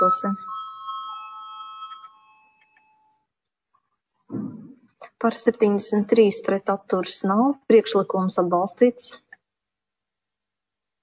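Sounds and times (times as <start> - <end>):
speech: 0.0 - 0.5, 5.2 - 9.2
parliament voting bell ringing: 0.0 - 3.3.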